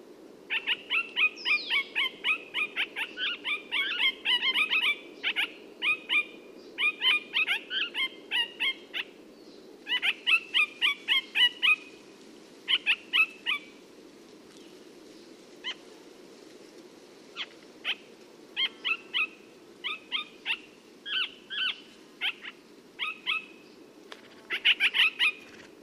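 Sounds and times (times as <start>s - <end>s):
parakeet calls: 0.5s - 9.1s, 9.9s - 11.9s, 12.7s - 13.7s, 18.6s - 23.5s, 24.5s - 25.8s.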